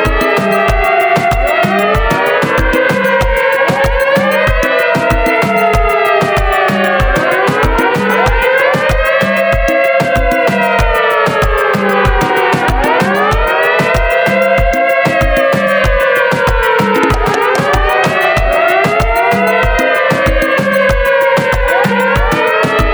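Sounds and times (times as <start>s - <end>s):
reggaeton siren effect: 0.0s - 22.9s.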